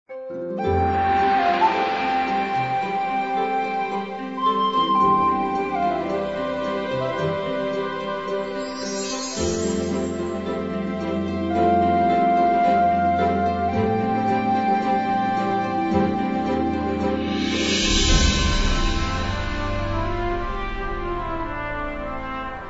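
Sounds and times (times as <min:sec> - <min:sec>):
adventure background music: 0:00.2 - 0:22.6.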